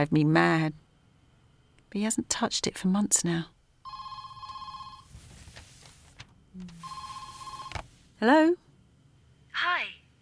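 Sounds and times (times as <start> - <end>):
speech: 0.0 - 0.8, 1.9 - 3.5, 6.6 - 7.0, 8.2 - 8.6
telephone ringing with buzzy electronic tone: 3.8 - 5.2, 6.7 - 8.0
brief low hum: 4.8 - 9.3.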